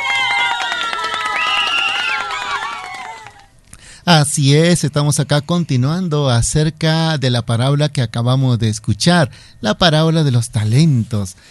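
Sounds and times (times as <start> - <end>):
audience applause: 0.0 - 3.5
speech: 4.1 - 11.4.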